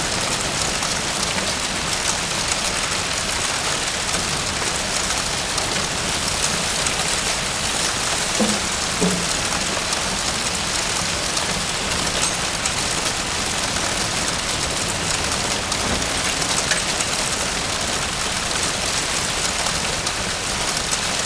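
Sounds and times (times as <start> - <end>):
disaster fire ambience: 0.0 - 21.2.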